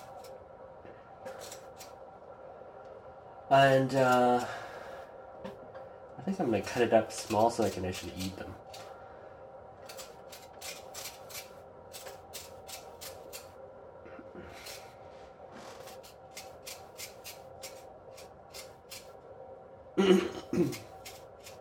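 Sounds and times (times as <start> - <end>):
refrigerator noise: 0.0 - 21.6
speech: 3.5 - 4.6, 6.3 - 8.6.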